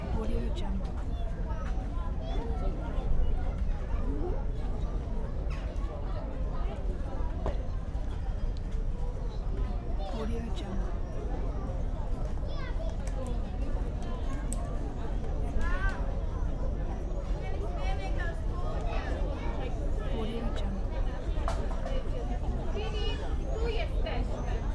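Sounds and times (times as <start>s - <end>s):
crowd of tourists near Wawel Castle in Krakow: 0.0s - 24.7s.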